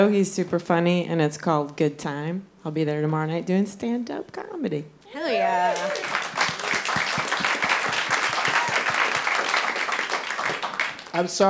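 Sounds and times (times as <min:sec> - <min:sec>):
speech: 0:00.0 - 0:06.3, 0:11.1 - 0:11.4
crowd applauding: 0:05.1 - 0:11.4.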